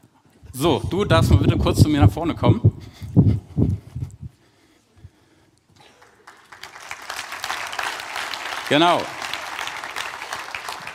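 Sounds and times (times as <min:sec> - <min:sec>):
speech: 0:00.5 - 0:03.3, 0:08.7 - 0:09.2
audience applause: 0:05.8 - 0:10.9.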